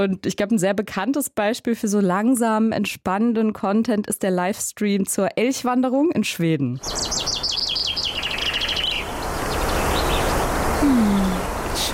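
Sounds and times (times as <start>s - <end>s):
speech: 0.0s - 7.4s
birds singing in a forest: 6.8s - 11.9s
wind: 6.8s - 11.9s.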